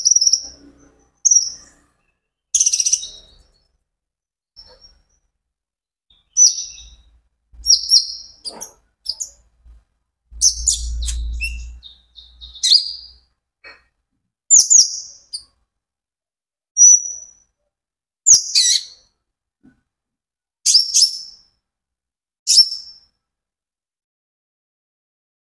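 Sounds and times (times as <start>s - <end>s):
Van Hasselt's sunbird chirping: 0.0s - 3.8s, 4.6s - 5.3s, 6.1s - 13.9s, 14.5s - 15.6s, 16.8s - 17.5s, 18.3s - 19.1s, 20.6s - 21.4s, 22.5s - 23.0s
low rumble: 10.3s - 12.4s.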